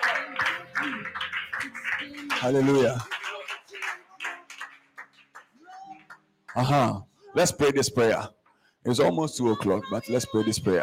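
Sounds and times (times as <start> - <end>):
audience clapping: 0.0 - 7.0
speech: 1.6 - 3.1, 6.6 - 10.8.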